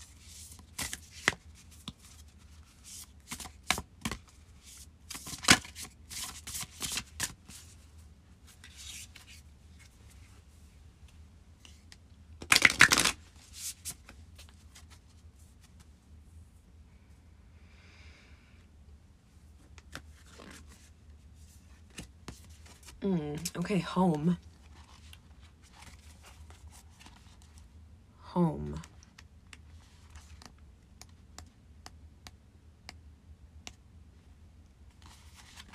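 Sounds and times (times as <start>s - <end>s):
spell casting oracle cards being shuffled: 0.0s - 7.8s, 8.4s - 10.2s, 11.6s - 15.9s, 19.7s - 20.9s, 21.7s - 23.6s, 24.2s - 27.5s, 35.0s - 35.7s
speech: 23.1s - 24.5s.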